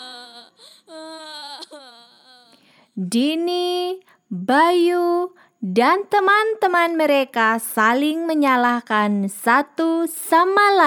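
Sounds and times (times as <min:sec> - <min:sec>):
child crying: 0:00.0 - 0:02.6
speech: 0:03.0 - 0:10.8.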